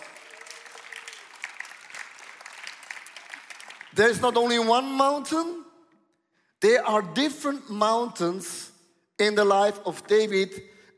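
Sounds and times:
audience applause: 0.0s - 4.1s
speech: 3.9s - 5.6s, 6.6s - 10.9s.

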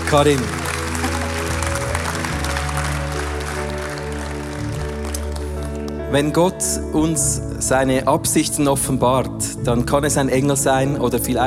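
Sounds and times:
audience applause: 0.0s - 6.0s
speech: 0.1s - 0.6s, 6.1s - 11.4s.

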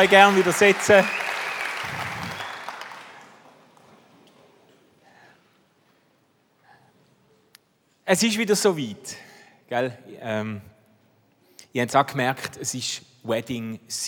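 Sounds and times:
speech: 0.0s - 2.0s, 8.1s - 10.7s, 11.7s - 14.0s
roaring applause from audience: 0.0s - 3.6s.

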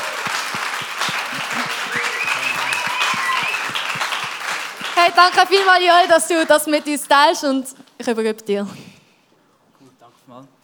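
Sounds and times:
audience applause: 0.0s - 7.1s
speech: 5.0s - 8.8s.

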